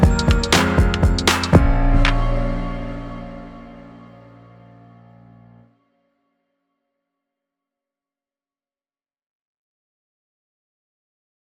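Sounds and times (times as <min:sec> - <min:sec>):
vocals: 0:00.0 - 0:03.5
mellow beats: 0:00.0 - 0:04.2.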